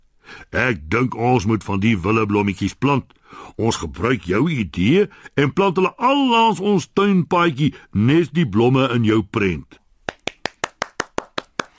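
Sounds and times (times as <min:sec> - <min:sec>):
speech: 0:00.5 - 0:09.8
hands clapping: 0:10.0 - 0:11.7.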